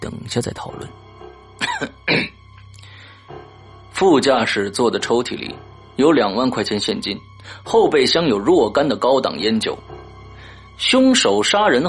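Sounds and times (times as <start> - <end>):
speech: 0.3 - 1.0, 1.8 - 2.3, 4.0 - 9.9, 10.8 - 11.8
man coughing: 1.6 - 2.4.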